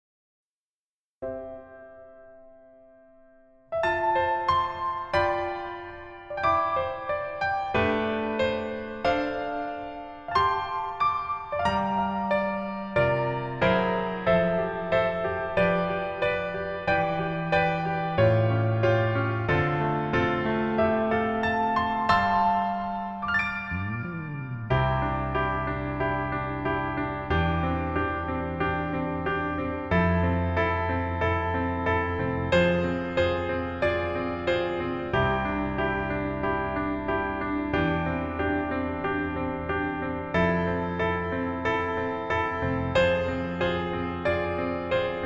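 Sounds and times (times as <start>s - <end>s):
piano piece in female key: 1.2s - 45.2s.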